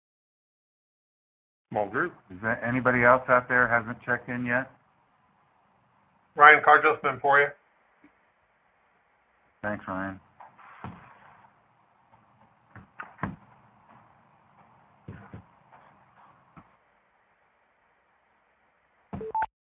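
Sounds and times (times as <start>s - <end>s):
speech: 1.7s - 4.8s, 6.4s - 7.6s, 9.6s - 10.2s
conference call join beeps: 19.2s - 19.5s.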